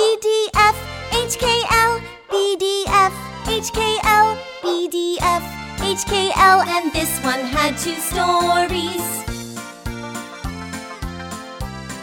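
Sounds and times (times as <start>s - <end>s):
children's song: 0.0s - 9.4s.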